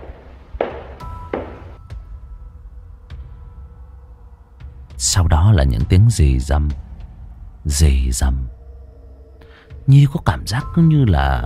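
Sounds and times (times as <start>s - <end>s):
hard footsteps in a corridor: 0.0s - 1.8s
speech: 5.0s - 6.8s, 7.6s - 8.6s, 9.9s - 11.4s.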